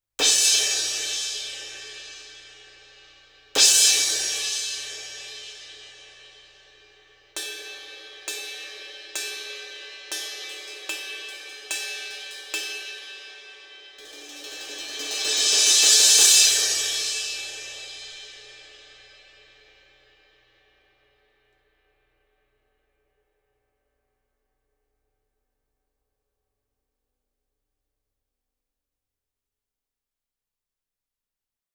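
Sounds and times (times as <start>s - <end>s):
crash cymbal: 0.2s - 20.8s.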